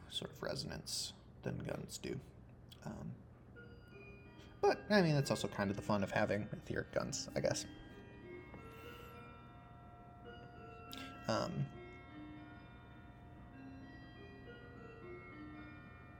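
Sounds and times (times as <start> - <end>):
speech: 0.1 - 3.3, 4.6 - 7.8, 11.3 - 11.8
bell ringing: 3.6 - 16.1.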